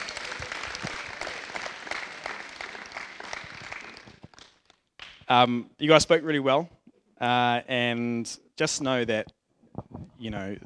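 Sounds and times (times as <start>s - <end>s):
audience applause: 0.0s - 5.2s
speech: 5.3s - 9.4s, 10.2s - 10.6s.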